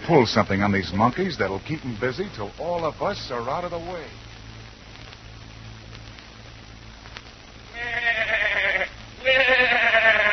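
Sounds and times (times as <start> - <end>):
speech: 0.1 - 4.2
goat bleating: 7.7 - 10.3.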